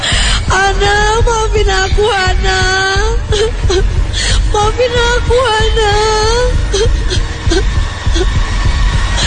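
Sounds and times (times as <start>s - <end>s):
low rhythmic throbbing pulse: 0.0s - 9.2s
person crying: 3.1s - 4.5s, 6.5s - 8.3s.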